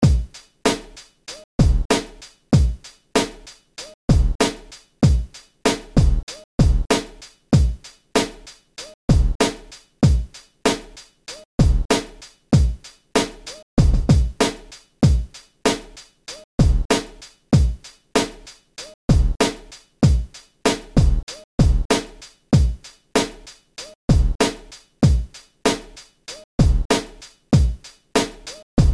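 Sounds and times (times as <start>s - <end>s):
orchestral beat: 0.0s - 28.9s.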